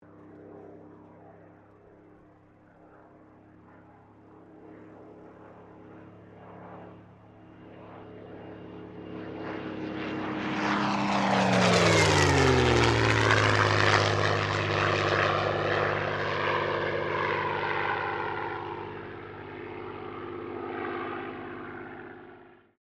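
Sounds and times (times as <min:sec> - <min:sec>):
Supermarine Spitfire Mk XVI aircraft passing: 0:00.0 - 0:22.8.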